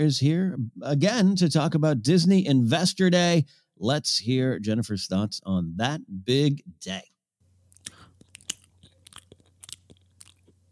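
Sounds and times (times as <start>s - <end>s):
speech: 0.0s - 7.1s
person chewing crunchy food: 7.7s - 10.6s.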